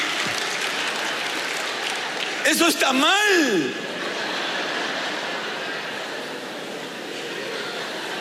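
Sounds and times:
applause: 0.0s - 3.7s
speech: 2.5s - 3.9s
laughter: 2.5s - 8.1s.

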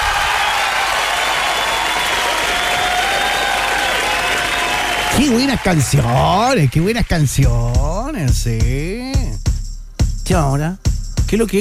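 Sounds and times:
applause: 0.0s - 7.7s
speech: 5.2s - 9.3s, 10.3s - 11.6s.

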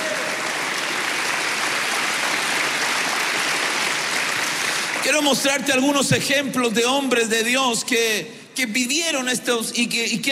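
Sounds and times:
audience clapping hands: 0.0s - 5.9s
speech: 5.1s - 10.2s.

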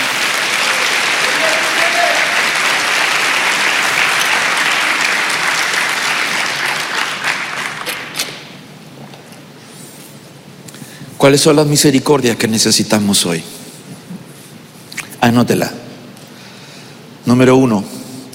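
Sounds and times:
audience clapping: 0.0s - 8.5s
speech: 11.2s - 13.6s, 15.3s - 15.8s, 17.2s - 17.9s.

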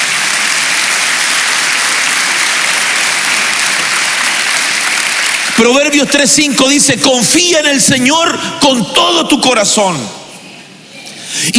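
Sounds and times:
audience clapping hands: 0.0s - 6.9s
speech: 5.6s - 10.2s.

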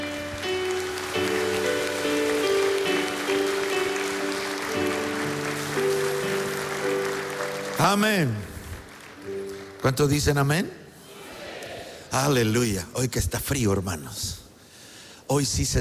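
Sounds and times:
audience clapping: 0.0s - 10.6s
speech: 7.8s - 8.5s, 9.8s - 10.8s, 12.1s - 14.4s, 15.3s - 15.7s.

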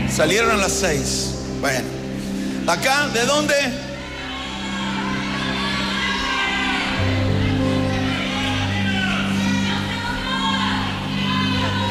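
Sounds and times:
speech: 0.2s - 2.0s, 2.7s - 3.9s
crowd shouting: 3.0s - 11.8s.

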